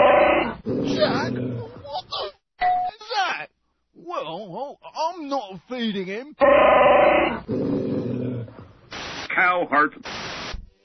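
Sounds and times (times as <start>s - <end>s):
dog growling: 0.3s - 2.0s, 7.3s - 8.7s
speech: 4.4s - 8.0s, 9.4s - 10.2s.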